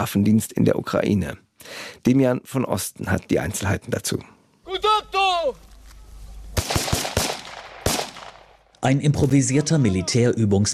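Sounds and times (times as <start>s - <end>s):
speech: 0.0s - 4.4s, 8.8s - 10.7s
soldiers firing guns at training targets: 6.6s - 8.7s.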